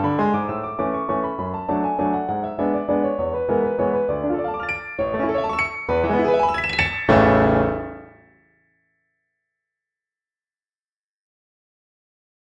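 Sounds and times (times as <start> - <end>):
waltz music: 0.0 - 8.2.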